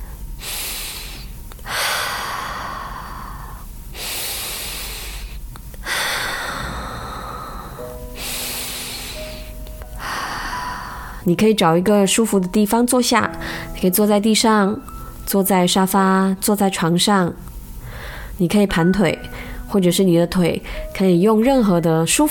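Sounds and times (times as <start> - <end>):
slow deep breaths during a guided relaxation exercise: 0.0 - 11.3, 13.4 - 13.8, 17.8 - 18.4
speech: 11.3 - 17.5, 18.4 - 22.2.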